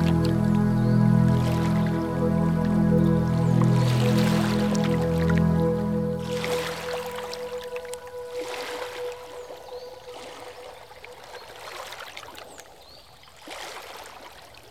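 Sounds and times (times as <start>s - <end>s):
music for yoga, meditation and relaxation: 0.0s - 11.7s.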